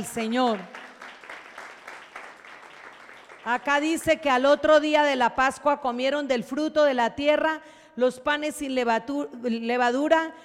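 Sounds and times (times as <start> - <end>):
speech: 0.0 - 0.8, 3.4 - 10.4
crowd applauding: 0.0 - 4.1.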